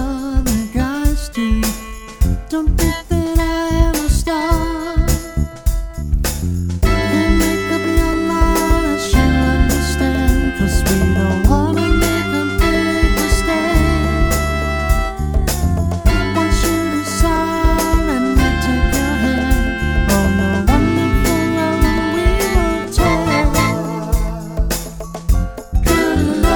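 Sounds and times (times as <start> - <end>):
R&B band playing: 0.0 - 6.0, 6.8 - 26.5.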